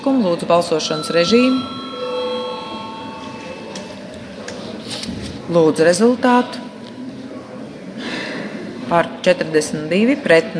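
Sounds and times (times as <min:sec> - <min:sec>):
speech: 0:00.0 - 0:01.8, 0:05.5 - 0:06.7, 0:08.9 - 0:10.5
parliament chamber bell ringing: 0:00.6 - 0:04.8.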